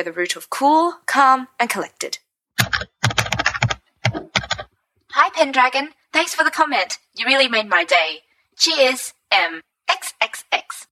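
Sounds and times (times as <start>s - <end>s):
speech: 0.0s - 2.2s, 5.2s - 10.8s
typing on a keypad: 2.6s - 4.7s.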